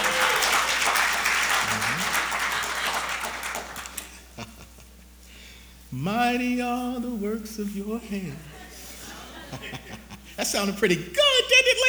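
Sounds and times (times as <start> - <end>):
audience clapping: 0.0 - 4.3
laughter: 1.6 - 5.0, 8.4 - 10.4
speech: 5.9 - 8.5, 9.5 - 11.8.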